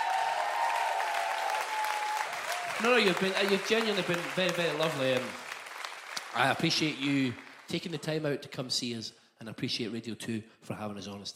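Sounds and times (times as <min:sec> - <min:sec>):
audience applause: 0:00.0 - 0:07.9
speech: 0:02.8 - 0:05.4, 0:06.3 - 0:11.3.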